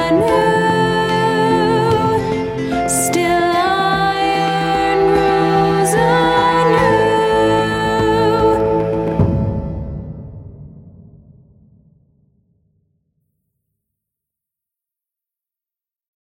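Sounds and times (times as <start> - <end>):
funeral ballad: 0.0 - 10.2.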